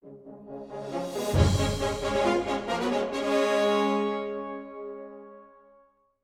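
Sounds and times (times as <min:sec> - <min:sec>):
in-game cutscene music: 0:00.0 - 0:05.0.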